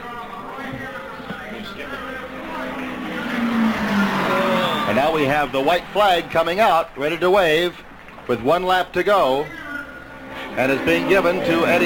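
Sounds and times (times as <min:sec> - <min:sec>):
commentator talking: 0:00.7 - 0:11.8
race car engine passing during an IndyCar race: 0:02.1 - 0:06.3, 0:09.9 - 0:11.8
speech: 0:04.9 - 0:09.6, 0:10.6 - 0:11.8.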